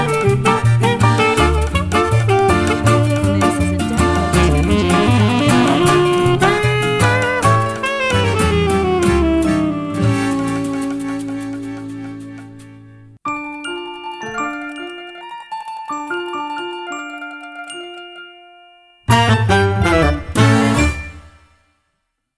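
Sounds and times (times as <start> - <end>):
tango music: 0.0 - 13.2, 19.1 - 21.2.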